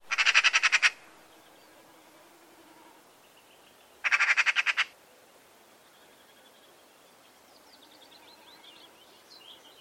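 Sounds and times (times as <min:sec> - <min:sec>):
bird giving a rapid buzzy chattering series: 0:00.1 - 0:01.0, 0:04.0 - 0:04.9.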